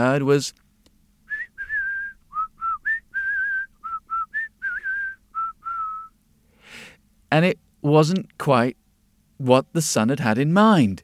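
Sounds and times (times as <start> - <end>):
speech: 0.0 - 0.6, 7.3 - 8.8, 9.4 - 11.0
person whistling a bird-like song: 1.3 - 6.2.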